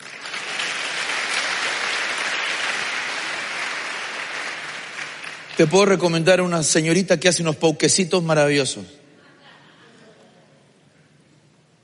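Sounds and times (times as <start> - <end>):
audience applause: 0.0 - 6.2
speech: 5.6 - 9.0.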